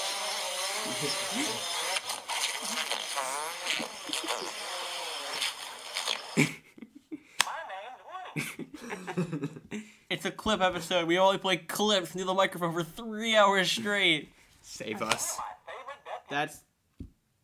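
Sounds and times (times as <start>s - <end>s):
drone flying: 0.0s - 6.4s
laughter: 0.8s - 1.8s, 2.5s - 9.9s
speech: 0.8s - 1.8s, 10.4s - 15.4s, 16.3s - 16.7s.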